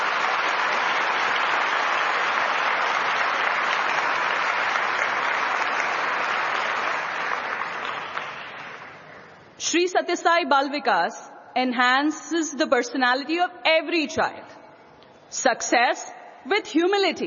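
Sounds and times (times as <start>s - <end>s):
audience applause: 0.0s - 9.3s
speech: 9.7s - 14.5s, 15.3s - 17.2s.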